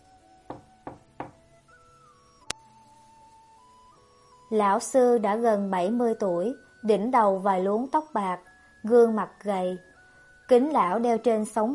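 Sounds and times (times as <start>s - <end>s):
soft knocks on a professor's office door: 0.5s - 1.4s
speech: 4.5s - 9.9s, 10.5s - 11.7s.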